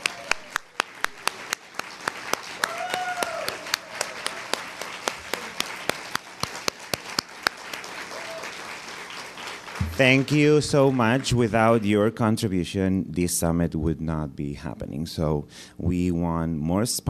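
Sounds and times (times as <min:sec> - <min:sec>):
audience applause: 0:00.0 - 0:12.0
speech: 0:10.0 - 0:17.0.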